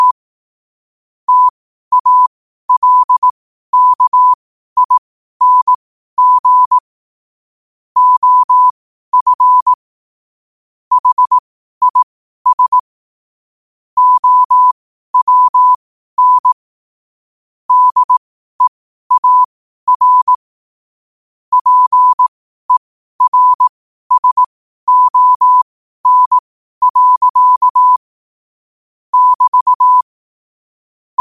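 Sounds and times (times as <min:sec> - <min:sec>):
morse code at 5 wpm: 0:01.3 - 0:06.8, 0:08.0 - 0:09.8, 0:10.9 - 0:12.8, 0:14.0 - 0:16.6, 0:17.7 - 0:20.4, 0:21.5 - 0:28.0, 0:29.1 - 0:30.1.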